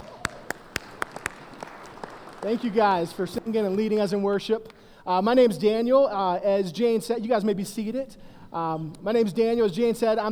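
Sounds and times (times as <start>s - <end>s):
audience clapping for the choir: 0.0s - 4.9s
speech: 2.4s - 10.3s.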